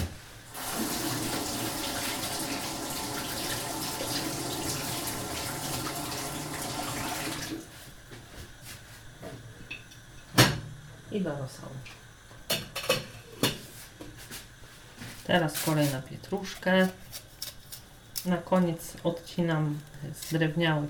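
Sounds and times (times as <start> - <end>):
rinsing celery under running tap water: 0.5 - 7.7
speech: 11.2 - 12.0, 15.3 - 17.2, 18.2 - 20.8.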